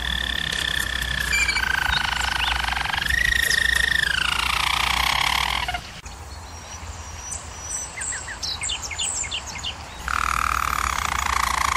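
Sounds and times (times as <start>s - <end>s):
German Roller canary rolling trill: 0.0s - 5.9s, 10.1s - 11.7s.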